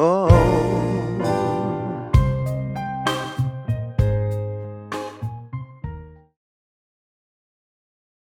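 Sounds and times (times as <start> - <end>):
modern vintage swing band playing: 0.3 - 5.4.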